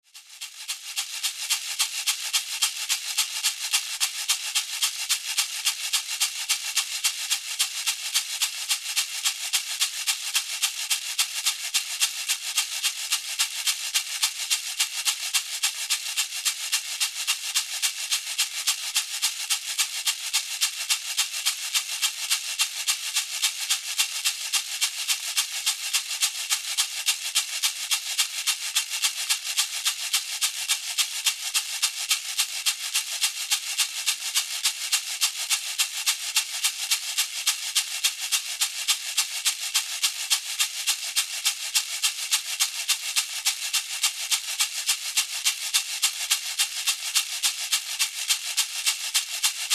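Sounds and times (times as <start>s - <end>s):
rattle: 0.1s - 49.7s.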